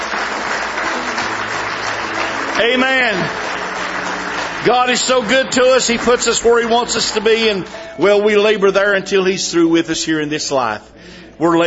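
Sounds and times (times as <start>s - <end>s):
congregation clapping during a church service: 0.0s - 8.3s
speech: 2.6s - 3.4s, 4.6s - 11.6s.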